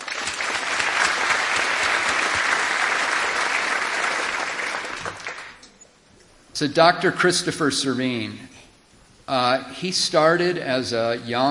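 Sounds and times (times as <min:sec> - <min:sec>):
audience applause: 0:00.0 - 0:05.6
speech: 0:06.6 - 0:08.5, 0:09.3 - 0:11.4.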